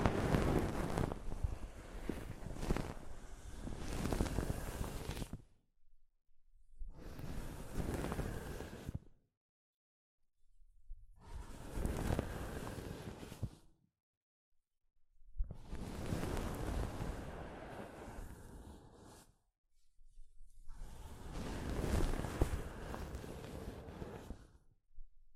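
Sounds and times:
soft fabric brushing across a microphone: 0.0s - 5.4s, 7.0s - 9.0s, 11.2s - 13.7s, 15.5s - 24.6s.

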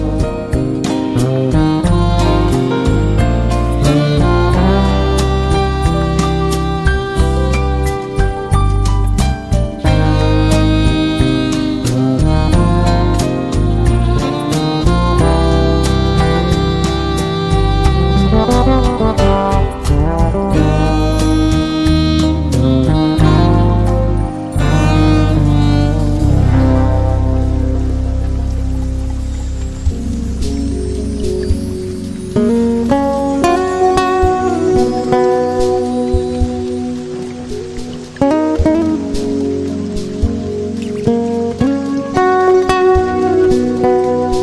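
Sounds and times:
smooth jazz with warm bass and steady drums: 0.0s - 44.4s.

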